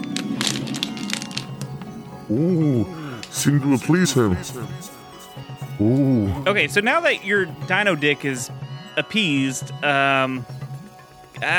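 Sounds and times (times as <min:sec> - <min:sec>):
plastic water bottle being crunched: 0:00.0 - 0:01.9
speech: 0:02.3 - 0:05.0, 0:05.8 - 0:10.6, 0:11.4 - 0:11.5.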